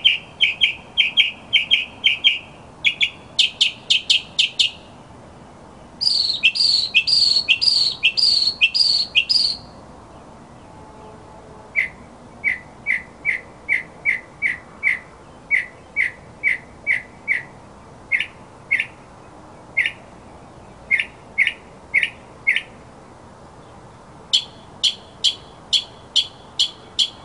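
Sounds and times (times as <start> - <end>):
mockingbird singing: 0.0 - 4.9, 6.0 - 9.7, 11.8 - 17.5, 18.1 - 19.1, 19.7 - 20.0, 20.6 - 22.7, 24.3 - 27.2.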